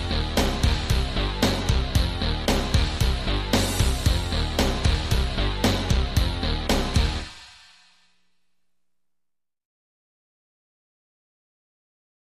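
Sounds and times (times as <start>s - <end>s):
bass: 0.0s - 7.4s
drums: 0.0s - 8.4s.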